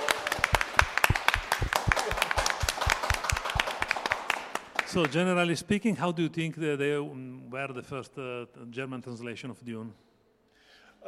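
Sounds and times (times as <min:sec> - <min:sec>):
small audience applause: 0:00.0 - 0:05.2
speech: 0:04.9 - 0:10.1.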